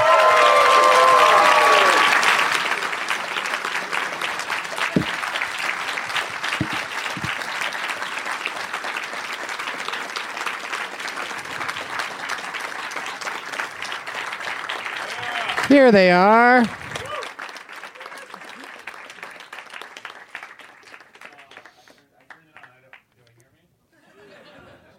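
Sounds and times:
whoops and cheers: 0:00.0 - 0:02.4, 0:15.0 - 0:15.6, 0:16.9 - 0:17.4
audience applause welcoming three guests at a show in Chicago: 0:00.0 - 0:23.3
speech: 0:15.8 - 0:16.8
laughter: 0:24.0 - 0:24.9.

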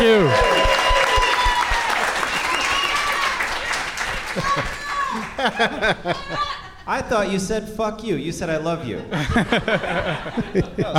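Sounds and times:
comedy show audience clapping and cheering for a guest: 0:00.0 - 0:06.5
laughter: 0:04.0 - 0:07.2, 0:08.8 - 0:10.9
speech: 0:05.4 - 0:10.9.

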